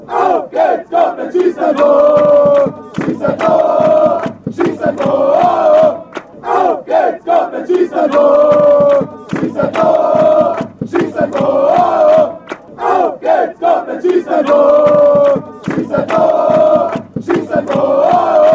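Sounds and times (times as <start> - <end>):
football fans chanting after a goal: 0.0 - 18.5.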